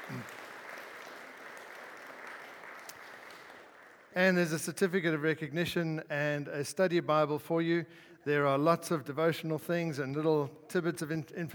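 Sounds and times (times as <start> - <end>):
round of applause: 0.0 - 4.2
speech: 4.2 - 11.5.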